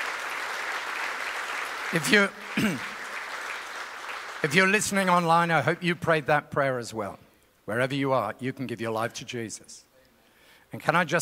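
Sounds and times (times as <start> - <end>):
audience applause: 0.0 - 5.3
speech: 1.9 - 2.9, 4.4 - 9.9, 10.7 - 11.2.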